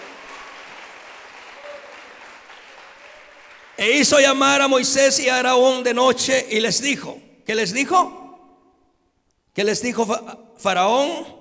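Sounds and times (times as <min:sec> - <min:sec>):
audience applause: 0:00.0 - 0:04.0
speech: 0:03.8 - 0:08.2, 0:09.6 - 0:11.3.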